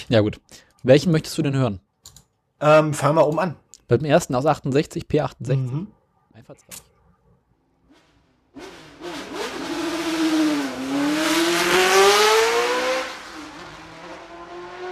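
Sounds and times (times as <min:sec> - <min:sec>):
speech: 0:00.0 - 0:01.9, 0:02.6 - 0:06.9
Formula 1 V8 racing engine accelerating at high revs: 0:08.5 - 0:14.8.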